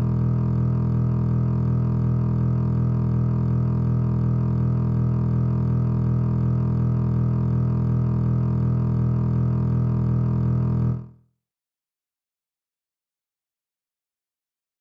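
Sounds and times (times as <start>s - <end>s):
bass E string being tuned: 0.0s - 11.1s.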